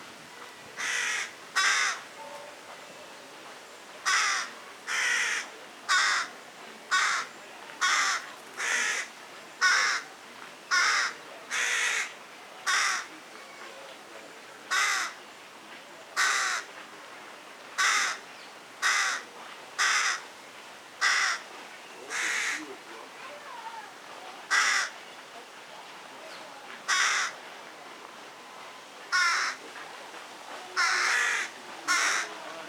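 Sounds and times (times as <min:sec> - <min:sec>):
carrion crow Corvus corone cawing: 0:00.8 - 0:02.0, 0:04.0 - 0:06.3, 0:06.9 - 0:10.0, 0:10.7 - 0:12.1, 0:12.7 - 0:13.1, 0:14.7 - 0:15.2, 0:16.2 - 0:16.7, 0:17.8 - 0:18.2, 0:18.8 - 0:19.2, 0:19.8 - 0:20.2, 0:21.0 - 0:21.4, 0:22.1 - 0:22.6, 0:24.5 - 0:25.0, 0:26.9 - 0:27.4, 0:29.1 - 0:29.6, 0:30.8 - 0:32.4.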